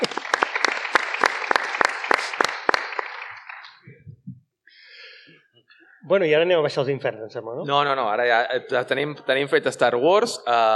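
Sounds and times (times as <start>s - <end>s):
audience applause: 0.0s - 3.9s
speech: 6.1s - 10.7s.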